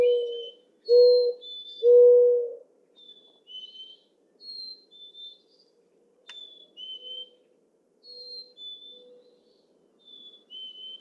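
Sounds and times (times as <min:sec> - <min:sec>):
other birds whistling: 0:00.0 - 0:02.1, 0:03.0 - 0:05.6, 0:06.3 - 0:07.4, 0:08.0 - 0:10.9
mourning dove cooing: 0:00.0 - 0:02.6.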